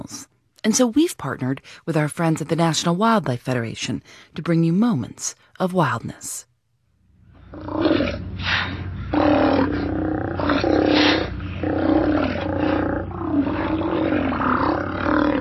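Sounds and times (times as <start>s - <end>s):
speech: 0.1s - 6.5s, 7.5s - 8.8s
low rumbling background: 6.9s - 15.3s
Steller sea lions deep growling roars: 7.5s - 15.3s.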